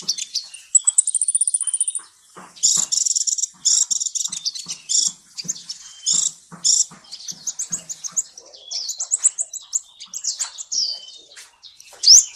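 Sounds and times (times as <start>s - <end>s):
bird singing masteran song: 0.0s - 12.3s.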